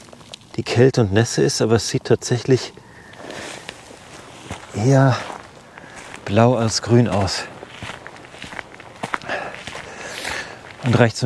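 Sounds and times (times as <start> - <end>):
speech: 0.6 - 2.8, 4.8 - 5.3, 6.3 - 7.5, 10.9 - 11.2
footsteps walking on a raised path through a moor: 2.9 - 11.2.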